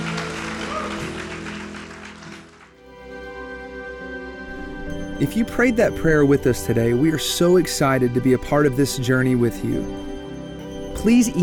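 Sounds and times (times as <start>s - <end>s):
audience applause: 0.0s - 2.8s
speech: 5.2s - 10.1s, 11.0s - 11.4s.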